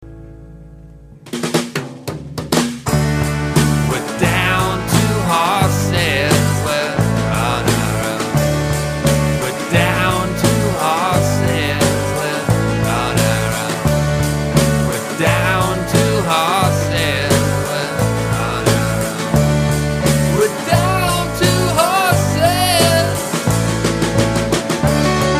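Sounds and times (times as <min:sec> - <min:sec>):
drum: 0:01.3 - 0:25.3.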